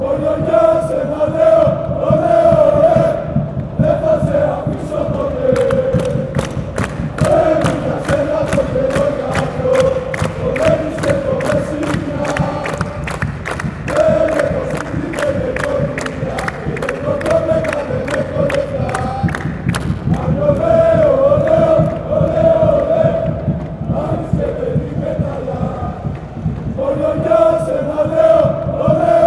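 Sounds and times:
chant: 0.0s - 29.2s.

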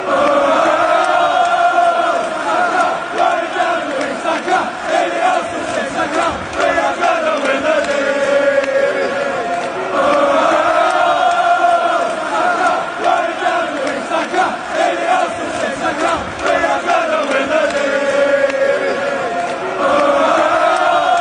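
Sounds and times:
football fans chanting: 0.0s - 21.1s.

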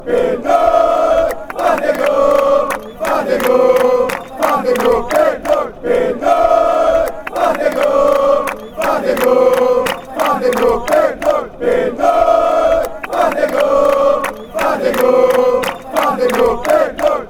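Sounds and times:
fans chanting: 0.0s - 17.2s.

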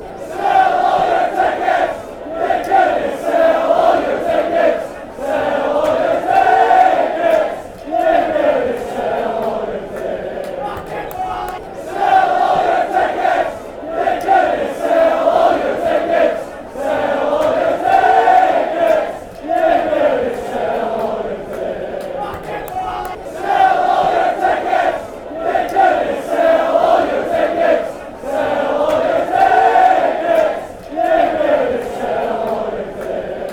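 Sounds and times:
fans chanting: 0.0s - 33.5s.

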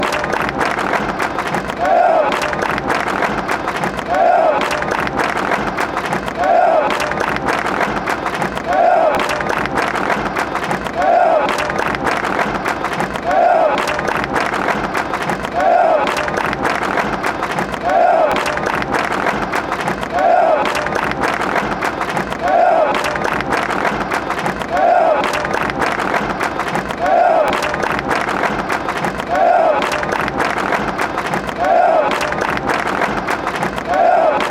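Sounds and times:
hand clapping: 0.0s - 34.4s.

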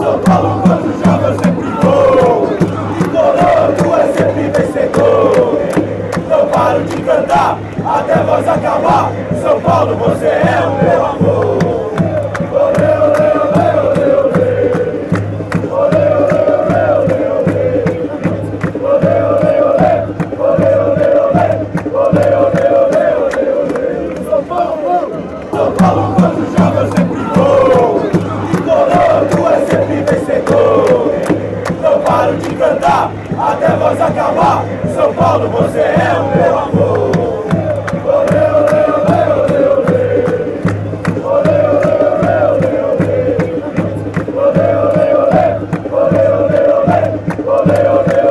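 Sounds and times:
football crowd chanting in Sao Paulo: 0.0s - 48.2s.

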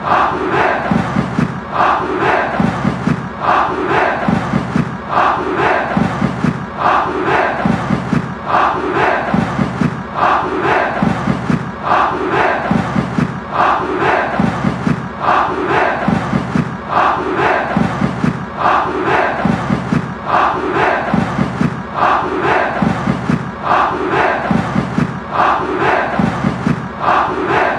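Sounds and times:
fans chanting: 0.0s - 27.7s.

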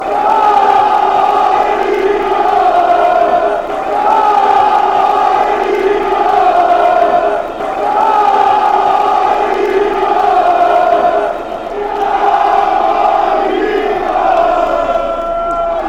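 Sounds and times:
crowd chanting: 0.0s - 15.8s.

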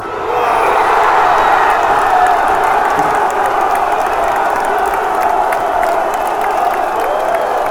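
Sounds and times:
fans chanting: 0.0s - 7.6s
person shouting goal: 0.3s - 1.8s.

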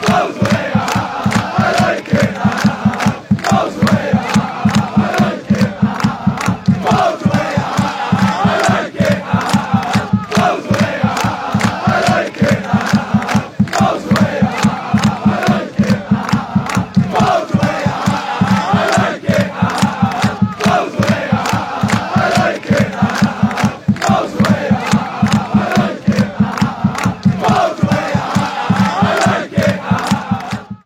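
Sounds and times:
football crowd chanting: 0.0s - 30.8s.

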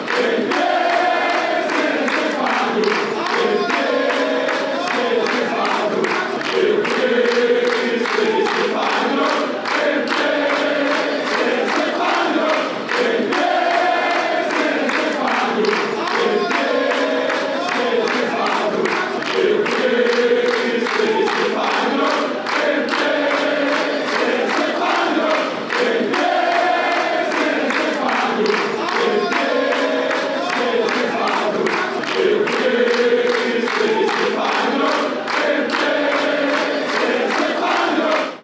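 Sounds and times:
football fans chanting: 0.0s - 38.4s.

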